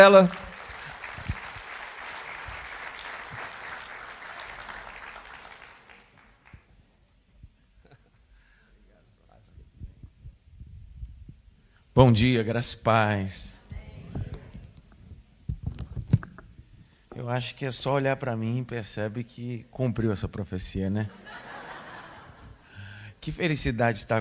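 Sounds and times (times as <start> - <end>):
speech: 0.0 - 0.4, 12.0 - 13.6, 17.2 - 21.4, 23.2 - 24.1
audience applause welcoming a speaker: 0.0 - 6.8
laughter: 21.1 - 22.7.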